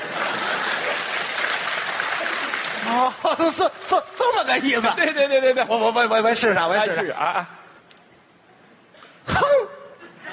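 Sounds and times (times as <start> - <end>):
laughter: 0.0 - 1.3, 2.2 - 5.9, 9.5 - 10.3
audience applause: 0.0 - 4.6
speech: 2.9 - 7.6.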